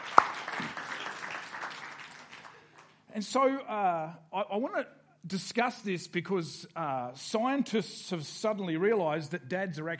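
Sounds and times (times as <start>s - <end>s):
audience applause for dads: 0.0s - 3.0s
speech: 3.2s - 9.9s.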